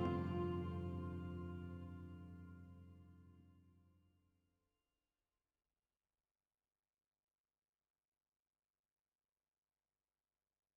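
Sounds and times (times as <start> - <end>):
voices: 0.0 - 2.3
qin: 0.0 - 2.4
cello: 0.0 - 2.7
clarinet: 0.0 - 3.0
viola: 0.0 - 3.0.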